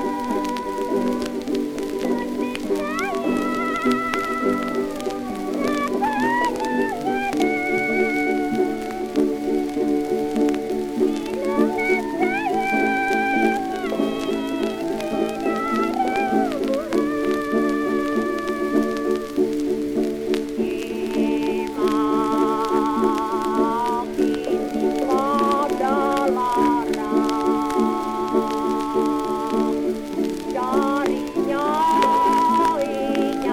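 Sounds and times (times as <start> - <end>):
kroncong music: 0.0 - 33.5.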